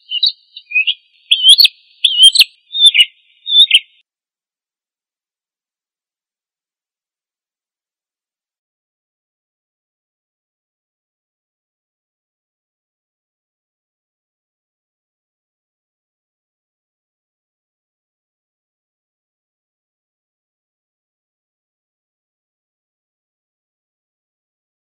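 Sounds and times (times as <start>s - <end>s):
Oriental magpie-robin singing short whistled notes: 0.0s - 4.0s.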